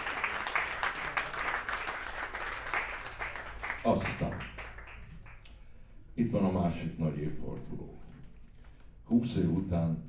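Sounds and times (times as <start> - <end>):
audience applauding a guitarist at a band's concert: 0.0 - 5.5
speech: 3.8 - 4.5, 6.2 - 8.0, 9.1 - 10.0.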